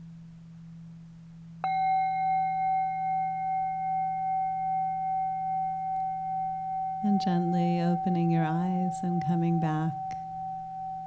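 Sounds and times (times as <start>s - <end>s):
Tibetan singing bowl bell ringing: 1.6s - 11.0s
speech: 7.1s - 10.1s.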